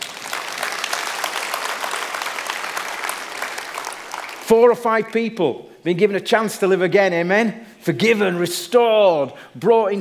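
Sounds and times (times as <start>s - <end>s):
audience applause: 0.0s - 4.5s
speech: 4.5s - 9.9s.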